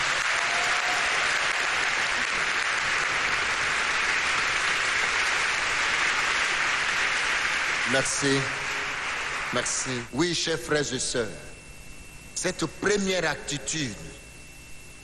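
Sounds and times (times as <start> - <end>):
congregation applauding the Lord in a French-language church service: 0.0 - 10.2
speech: 7.9 - 8.6, 9.5 - 11.5, 12.4 - 14.2.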